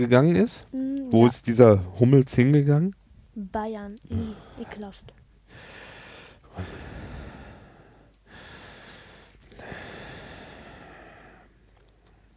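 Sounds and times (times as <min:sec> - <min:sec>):
speech: 0:00.0 - 0:05.7, 0:06.6 - 0:06.9
heavy rasping breathing from a person: 0:04.1 - 0:04.8, 0:05.5 - 0:11.7.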